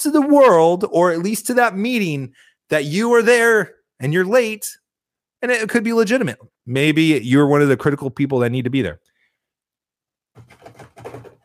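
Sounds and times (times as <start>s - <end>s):
speech: 0.0s - 4.8s, 5.4s - 9.1s
person imitating keyboard typing with mouth sounds: 10.4s - 11.4s.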